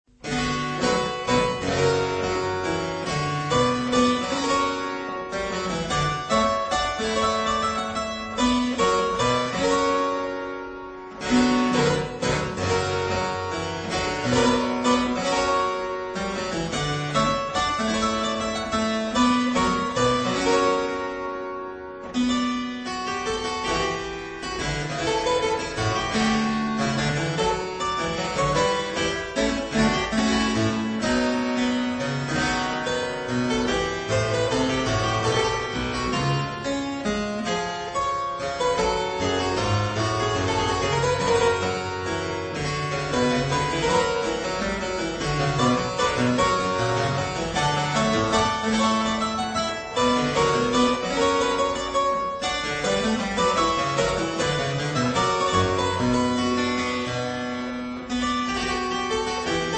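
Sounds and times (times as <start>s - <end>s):
minuet in C minor: 0.2s - 59.7s.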